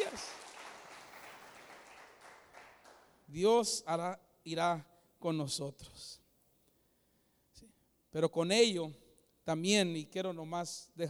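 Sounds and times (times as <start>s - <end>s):
audience applause: 0.0s - 3.1s
speech: 3.3s - 6.2s, 7.6s - 11.0s.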